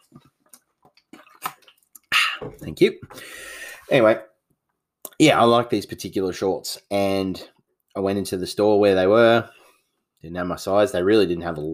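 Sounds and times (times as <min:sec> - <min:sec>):
person swigging a drink of water: 0:00.4 - 0:02.7
speech: 0:02.5 - 0:04.3, 0:05.2 - 0:09.6, 0:10.2 - 0:11.7.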